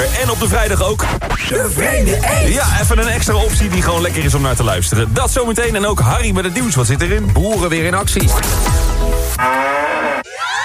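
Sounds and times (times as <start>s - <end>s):
speech: 0.2s - 9.6s
cow mooing sound from Müllermilk bottle: 9.4s - 10.3s.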